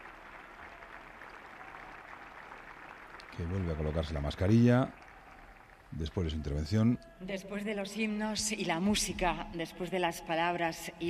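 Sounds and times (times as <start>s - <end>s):
audience applause: 0.0s - 6.9s
speech: 3.4s - 5.0s, 5.9s - 11.0s.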